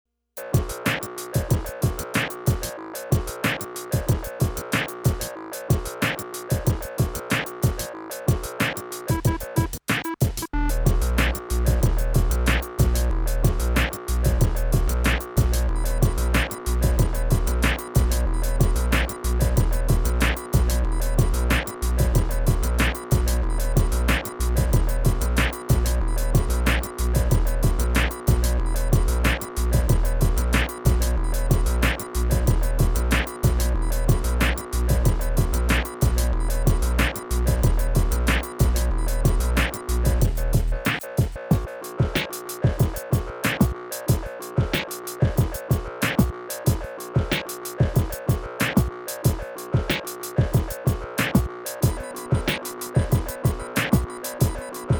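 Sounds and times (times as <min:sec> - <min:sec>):
skotch beat: 0:00.4 - 0:54.9.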